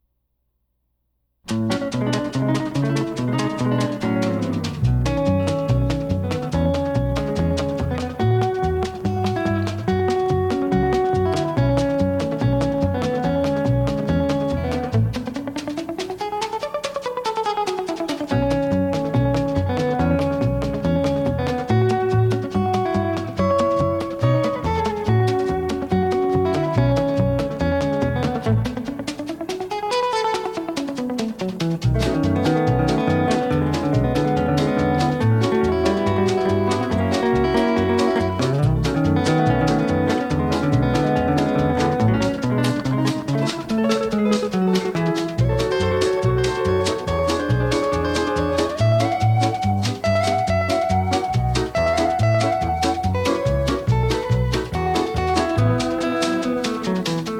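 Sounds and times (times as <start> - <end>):
guitar: 1.4 - 57.3.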